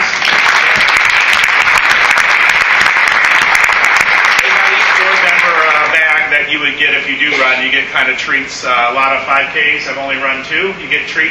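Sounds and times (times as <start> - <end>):
audience applause: 0.0 - 6.2
speech: 6.8 - 11.2.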